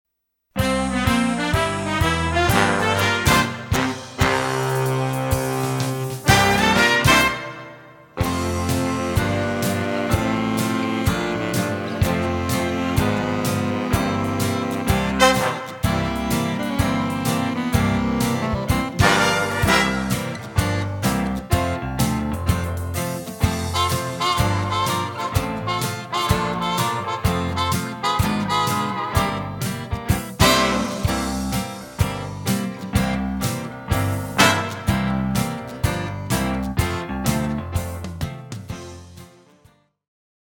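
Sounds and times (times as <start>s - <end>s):
big band instrumental: 0.6s - 39.5s.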